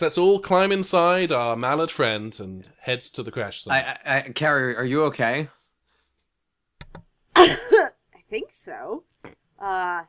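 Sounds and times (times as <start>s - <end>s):
speech: 0.0s - 5.6s, 7.4s - 7.7s, 8.3s - 10.0s
loud harsh cough: 7.4s - 8.0s.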